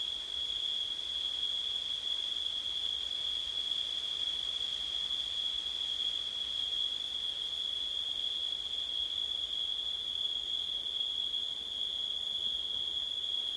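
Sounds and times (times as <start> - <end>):
crickets giving a continuous high-pitched trill: 0.0 - 13.5.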